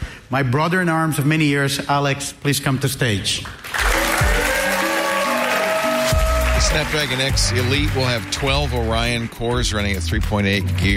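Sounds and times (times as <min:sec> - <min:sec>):
speech: 0:00.3 - 0:03.6, 0:06.7 - 0:10.9
audience applause: 0:03.6 - 0:09.5.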